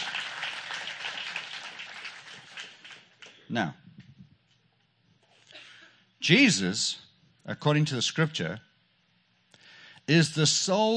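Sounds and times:
congregation applauding at a church service: 0.0s - 3.4s
speech: 3.5s - 3.8s, 6.3s - 8.7s, 10.1s - 10.9s.

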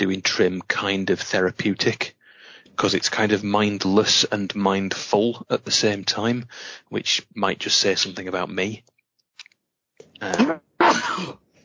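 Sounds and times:
speech: 0.0s - 2.2s, 2.8s - 8.9s, 10.2s - 10.6s
person sneezing: 10.2s - 11.4s.

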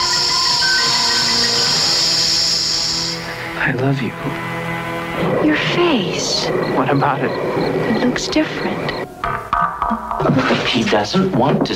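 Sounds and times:
hissing: 0.0s - 9.2s
speech: 3.6s - 10.0s, 10.8s - 11.7s.

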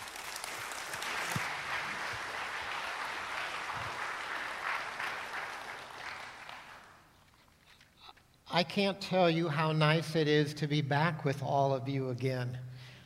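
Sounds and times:
audience applauding to welcome a speaker onstage: 0.0s - 7.1s
speech: 8.6s - 12.7s.

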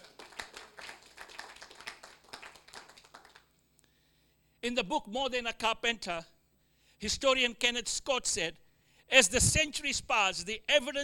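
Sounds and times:
audience clapping: 0.0s - 3.6s
speech: 4.6s - 6.3s, 7.0s - 11.0s.

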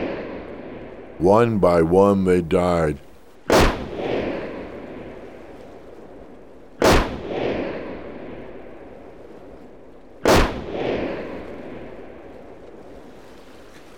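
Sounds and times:
speech: 1.2s - 3.1s
gunfire: 3.5s - 4.8s, 6.8s - 8.2s, 10.2s - 11.6s.

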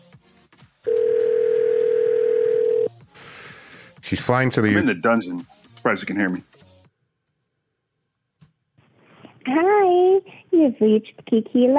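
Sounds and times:
telephone dial tone after a call is hung up: 0.9s - 2.9s
speech: 4.1s - 6.5s, 10.8s - 11.7s.

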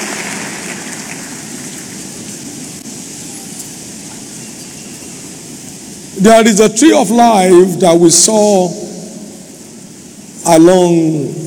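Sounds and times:
audience applauding: 0.0s - 2.4s
speech: 6.2s - 8.8s, 10.5s - 11.4s.

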